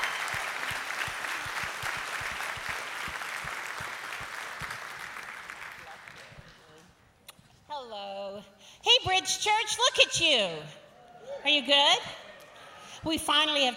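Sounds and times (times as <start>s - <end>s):
church congregation applause welcoming a guest: 0.0s - 6.8s
speech: 9.2s - 10.8s, 11.4s - 12.2s, 13.0s - 13.7s.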